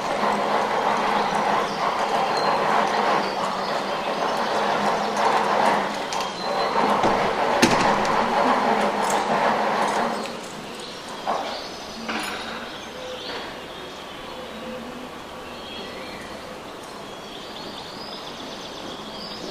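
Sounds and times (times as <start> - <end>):
bird song on a town street in the morning: 0.0 - 9.4, 10.0 - 19.4
doors opened and closed on a town street: 0.0 - 13.7
distant carpenter working: 0.0 - 14.0
indecipherable chatter on a town street: 0.0 - 19.4
footsteps on a town street: 5.3 - 10.6.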